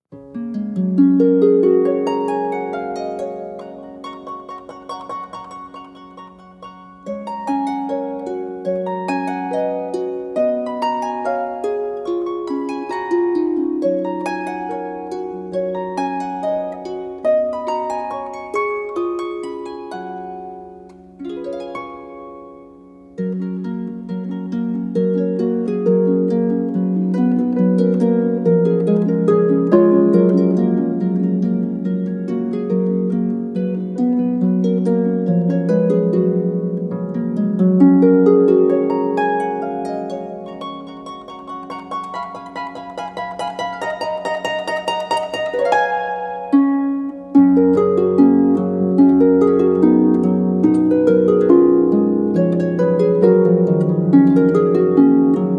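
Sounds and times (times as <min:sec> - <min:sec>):
Christmas song: 0:00.0 - 0:55.5.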